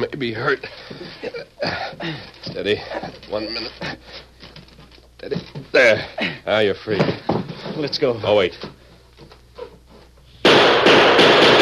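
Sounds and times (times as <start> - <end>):
speech: 0.2 - 4.3, 5.2 - 8.7
gunshots fired out of a window: 10.4 - 11.5.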